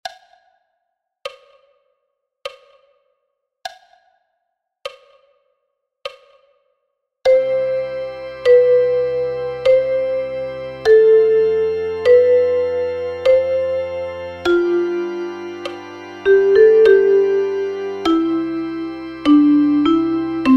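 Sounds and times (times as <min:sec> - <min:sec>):
chorale: 0:07.4 - 0:20.5.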